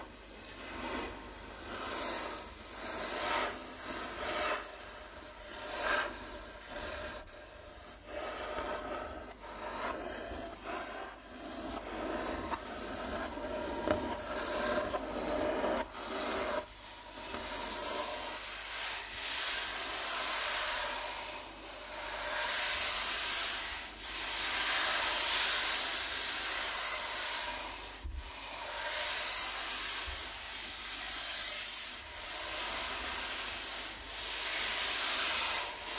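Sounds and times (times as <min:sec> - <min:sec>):
rubbing on a wooden table: 0:00.8 - 0:35.9
scratching on a wooden table: 0:05.6 - 0:18.4.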